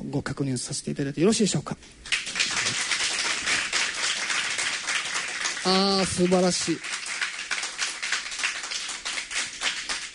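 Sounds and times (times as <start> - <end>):
speech: 0.1 - 2.2, 5.6 - 6.9
audience clapping: 2.0 - 10.1.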